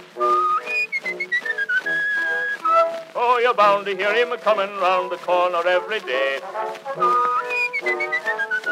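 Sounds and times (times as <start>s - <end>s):
band playing softly: 0.0s - 8.7s
man whistling a tune: 0.2s - 2.9s, 7.0s - 8.7s
speech: 3.4s - 8.0s.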